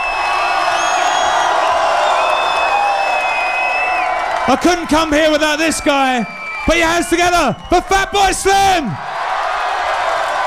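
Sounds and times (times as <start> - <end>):
shrill whistles from a dance-music crowd: 0.0 - 8.2
big crowd cheering at a dance-music night at the Beach Club in Brighton: 0.0 - 10.4
speech: 4.5 - 9.1.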